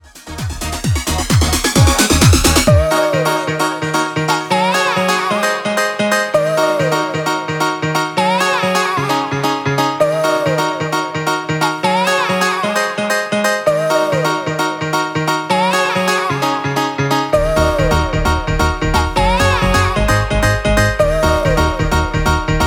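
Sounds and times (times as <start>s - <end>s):
Scottish piano music: 0.0s - 22.6s.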